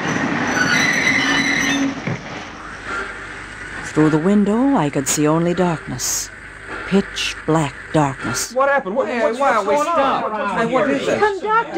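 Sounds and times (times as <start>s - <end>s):
steam train brakes screeching to a stop: 0.0s - 4.5s
rumbling rail noise: 0.0s - 11.7s
speech: 4.0s - 11.7s.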